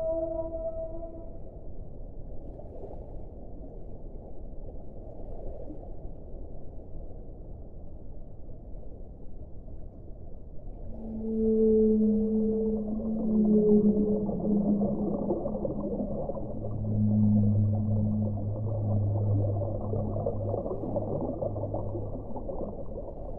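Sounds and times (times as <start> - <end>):
underwater whale song: 0.0 - 1.6, 10.7 - 23.3
constant murky underwater rumble: 10.8 - 23.3.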